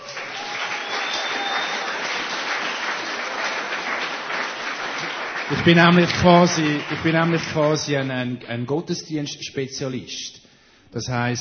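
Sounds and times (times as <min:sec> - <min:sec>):
audience applause: 0:00.0 - 0:08.0
speech: 0:05.6 - 0:11.3.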